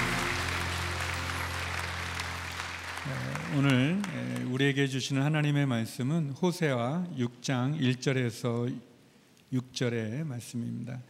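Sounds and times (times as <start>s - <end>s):
audience applause: 0.0s - 4.8s
speech: 3.0s - 8.9s, 9.5s - 11.0s.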